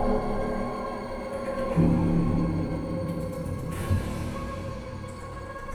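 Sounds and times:
dark ghostly ambience: 0:00.0 - 0:04.8.

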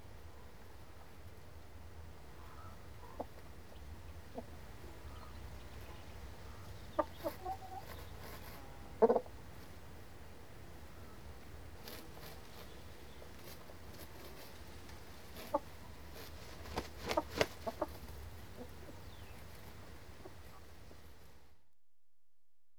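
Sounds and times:
chickens clucking: 0:02.4 - 0:10.0, 0:10.8 - 0:21.0
scratching and scuffling: 0:11.8 - 0:18.2.

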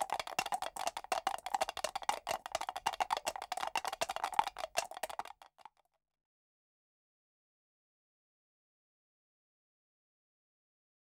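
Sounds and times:
many horses trotting: 0:00.0 - 0:05.3.

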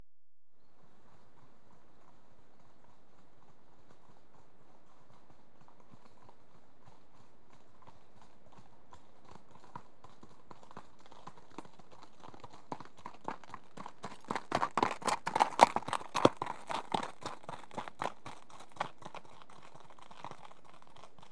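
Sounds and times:
two horses' hooves trotting: 0:01.4 - 0:21.3.

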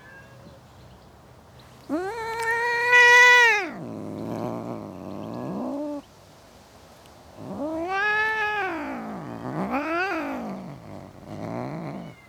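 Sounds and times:
domestic cat meowing in a suburban garden: 0:01.9 - 0:06.0, 0:07.4 - 0:12.2.

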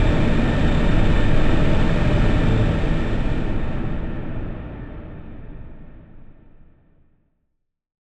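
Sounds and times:
drone: 0:00.0 - 0:05.7.

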